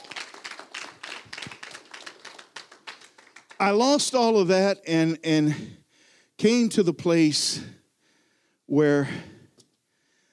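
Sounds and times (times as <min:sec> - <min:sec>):
audience clapping: 0:00.0 - 0:03.8
speech: 0:03.6 - 0:05.8, 0:06.4 - 0:07.8, 0:08.7 - 0:09.3.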